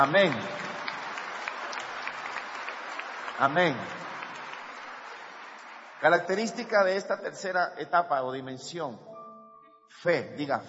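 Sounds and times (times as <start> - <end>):
speech: 0.0 - 0.6, 3.4 - 4.0, 6.0 - 9.1, 9.9 - 10.6
church congregation applause: 0.0 - 7.6.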